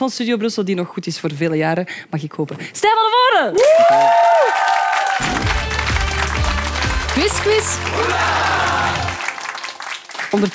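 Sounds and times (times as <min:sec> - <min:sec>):
speech: 0:00.0 - 0:05.6, 0:07.2 - 0:08.6, 0:10.3 - 0:10.5
applause: 0:03.6 - 0:10.5.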